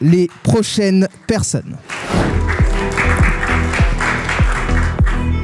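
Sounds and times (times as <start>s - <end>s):
speech: 0.0s - 2.6s
audience applause: 1.8s - 5.3s.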